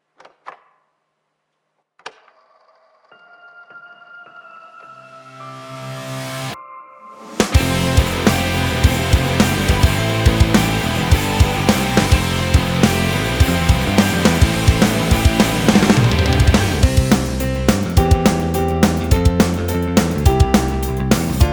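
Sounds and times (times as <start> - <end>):
rock music: 7.3 - 21.5.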